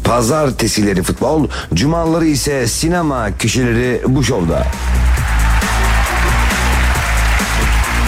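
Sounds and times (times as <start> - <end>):
speech: 0.1 - 5.1
applause: 4.6 - 8.0.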